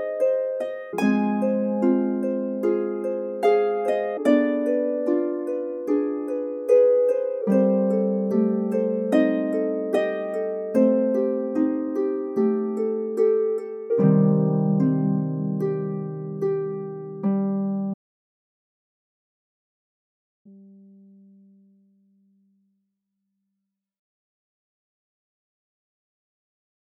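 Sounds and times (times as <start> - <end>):
harp: 0.0 - 18.0.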